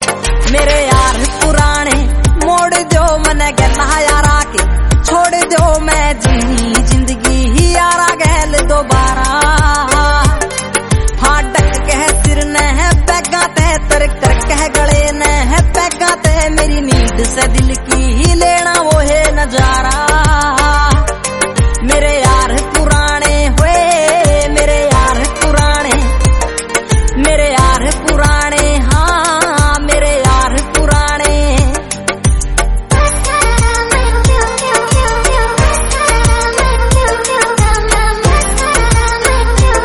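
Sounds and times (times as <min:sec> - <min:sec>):
new Haryanvi song: 0:00.0 - 0:39.8.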